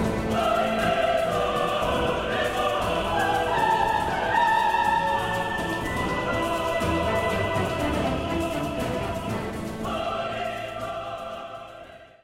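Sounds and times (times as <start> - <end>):
chocalho shaker: 0.0 - 11.8
reco-reco scraper percussion: 0.0 - 11.9.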